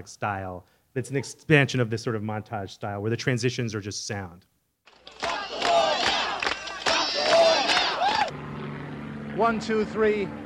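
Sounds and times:
speech: 0:00.0 - 0:04.5, 0:09.4 - 0:10.4
protest crowd chanting: 0:05.0 - 0:08.3.

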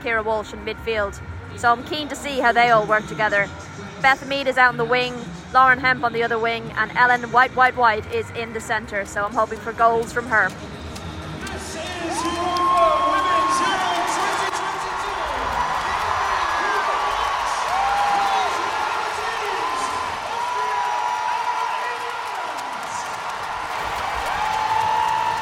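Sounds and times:
speech: 0:00.0 - 0:10.8
stadium crowd roaring: 0:11.2 - 0:25.3.

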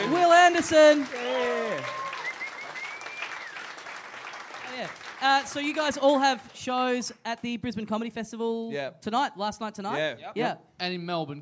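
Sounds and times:
round of applause: 0:00.0 - 0:06.6
speech: 0:00.6 - 0:01.5, 0:04.8 - 0:11.4.

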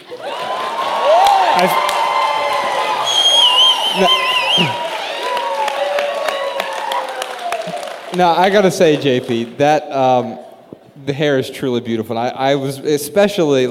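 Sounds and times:
cheering: 0:00.0 - 0:09.2
applause: 0:00.0 - 0:09.6
speech: 0:01.6 - 0:01.8, 0:04.0 - 0:04.8, 0:08.2 - 0:10.4, 0:11.0 - 0:13.7.

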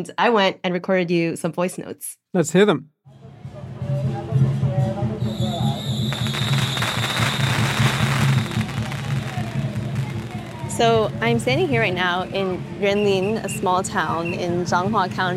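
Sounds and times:
speech: 0:00.0 - 0:02.9, 0:10.8 - 0:15.3
loud festive religious procession for Mazu: 0:03.1 - 0:14.1
firecrackers: 0:05.2 - 0:11.7.

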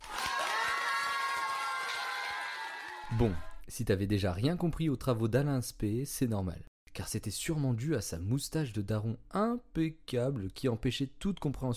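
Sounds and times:
applause: 0:00.0 - 0:03.5
crowd cheering and whooping: 0:00.0 - 0:03.6
speech: 0:03.1 - 0:11.7.

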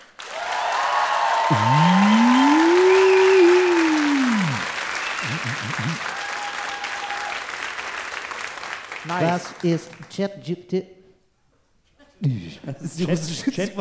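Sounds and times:
wild audience applause: 0:00.0 - 0:10.1
speech: 0:01.5 - 0:02.0, 0:09.1 - 0:11.0, 0:12.2 - 0:13.7
laughter: 0:01.5 - 0:06.1, 0:12.0 - 0:13.7.

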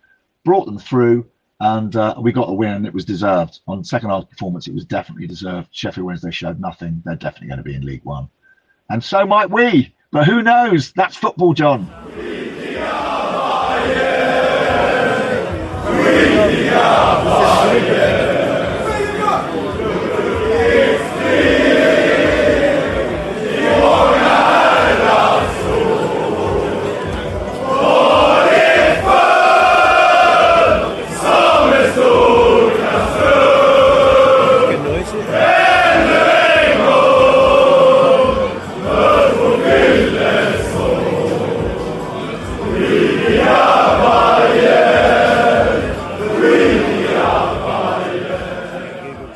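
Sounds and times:
speech: 0:00.4 - 0:12.2
crowd of football fans chanting and singing in a pub: 0:11.9 - 0:49.3.

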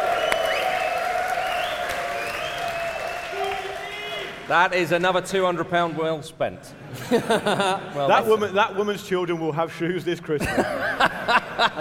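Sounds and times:
audience applause at live show: 0:00.0 - 0:04.8
speech: 0:04.5 - 0:11.7
laughter: 0:06.7 - 0:08.6, 0:10.4 - 0:11.7.

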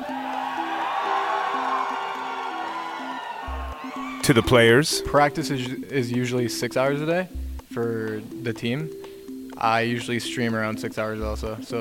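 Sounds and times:
roaring crowd cheering at an esports event: 0:00.0 - 0:05.0
speech: 0:04.3 - 0:09.0, 0:09.6 - 0:11.7.

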